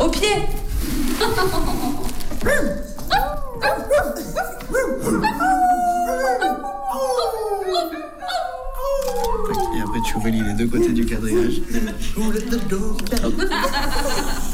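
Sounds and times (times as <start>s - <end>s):
speech: 0.2s - 5.3s, 10.0s - 14.5s
laughter: 1.1s - 2.3s, 3.6s - 7.3s, 9.3s - 14.5s
people imitating a pack of dogs: 2.4s - 12.0s.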